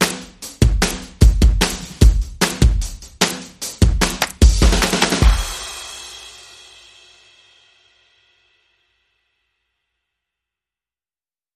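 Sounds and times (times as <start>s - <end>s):
drums playing: 0.0s - 7.1s.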